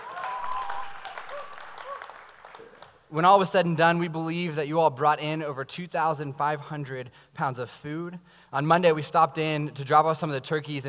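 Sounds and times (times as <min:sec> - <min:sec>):
faint voices and whoops: 0:00.0 - 0:02.8
audience applause: 0:00.0 - 0:03.0
speech: 0:02.6 - 0:10.8.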